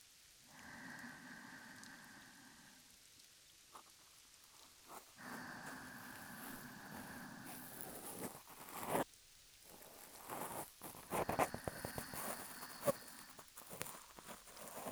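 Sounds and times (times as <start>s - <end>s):
ear cleaning in right ear: 4.9s - 14.8s.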